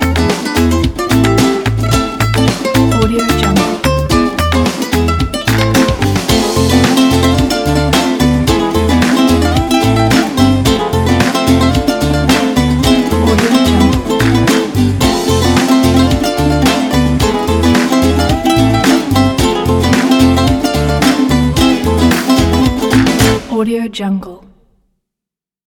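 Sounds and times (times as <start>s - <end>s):
Spanish guitar pop music: 0.0s - 23.6s.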